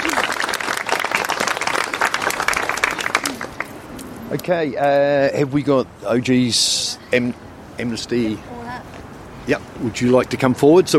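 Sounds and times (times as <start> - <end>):
audience applause: 0.0 - 3.7
speech: 4.3 - 8.6, 9.5 - 10.9.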